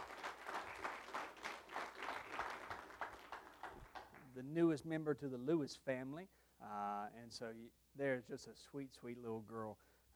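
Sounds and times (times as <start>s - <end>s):
audience applauding: 0.0s - 4.3s
speech: 4.4s - 10.1s.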